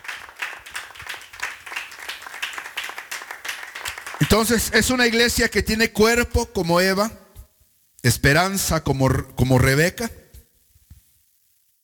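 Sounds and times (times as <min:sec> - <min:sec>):
audience clapping hands: 0:00.0 - 0:05.2
speech: 0:04.3 - 0:07.2, 0:08.0 - 0:10.2.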